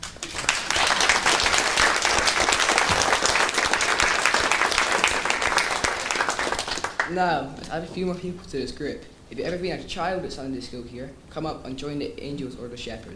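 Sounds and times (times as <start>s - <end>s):
crowd applauding: 0.0s - 7.2s
speech: 7.1s - 13.1s.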